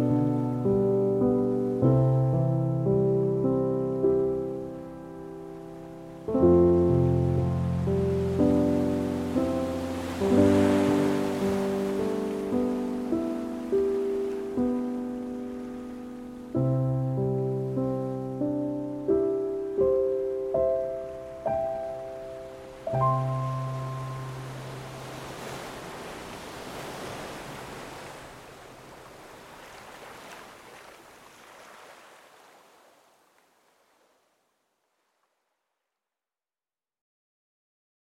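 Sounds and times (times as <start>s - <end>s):
peaceful piano music: 0.0s - 25.4s
ocean waves: 3.0s - 34.4s.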